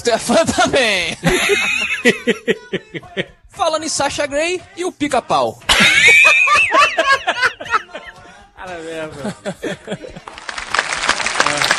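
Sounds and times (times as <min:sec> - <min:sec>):
speech: 0:00.0 - 0:07.2, 0:08.6 - 0:10.2
laughter: 0:00.1 - 0:03.4, 0:05.7 - 0:08.4, 0:09.0 - 0:10.6
aggressive applause: 0:10.2 - 0:11.7.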